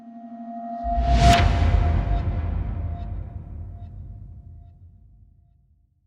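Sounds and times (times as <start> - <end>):
transition sound: 0.7 - 5.2.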